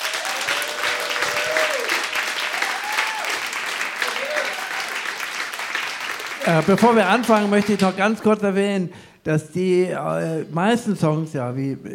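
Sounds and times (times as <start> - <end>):
audience applause: 0.0 - 8.0
speech: 6.5 - 11.9.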